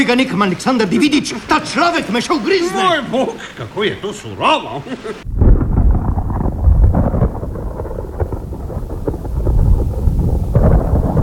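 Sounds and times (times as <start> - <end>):
speech: 0.0 - 5.4
laughter: 0.7 - 5.3
rumbling thunder of an approaching storm: 5.2 - 11.2.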